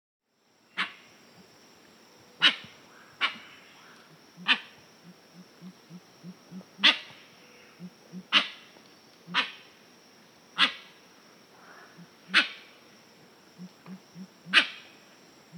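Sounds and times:
Pale-winged Trumpeter low pulsed hoots: 2.4 - 8.6, 9.2 - 9.6, 11.5 - 12.8, 13.5 - 15.5.

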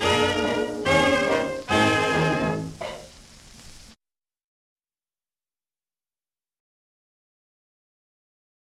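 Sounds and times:
orchestra playing: 0.0 - 2.8.

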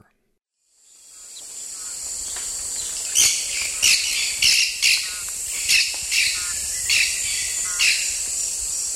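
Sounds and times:
Maroon-tailed Parakeet calling in the Eastern Lowlands of South America: 2.8 - 8.1.

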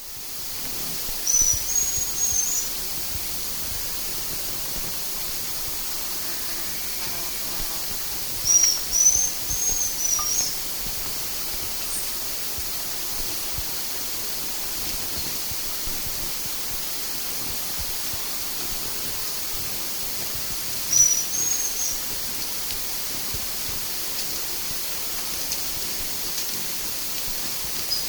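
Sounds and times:
background hiss: 0.0 - 28.0
bronze-olive pygmy-tyrant calling: 8.5 - 10.5.

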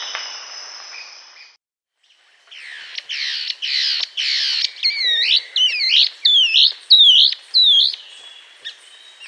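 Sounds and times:
Long-winged antwren song in South America: 2.6 - 9.1.

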